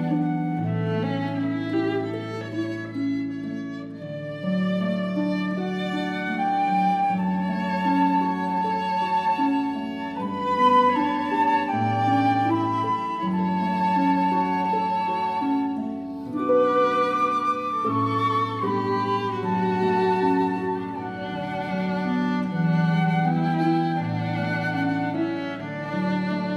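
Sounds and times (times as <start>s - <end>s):
flute: 0.0s - 26.5s
harp: 0.0s - 26.5s
violin: 0.0s - 26.5s.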